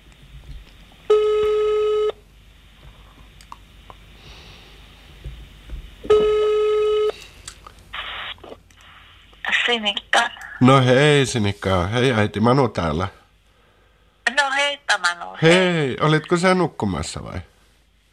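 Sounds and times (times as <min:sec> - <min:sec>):
phone ringback tones on outgoing call: 0:01.1 - 0:02.2, 0:06.1 - 0:07.2
speech: 0:09.7 - 0:13.2, 0:15.4 - 0:17.5.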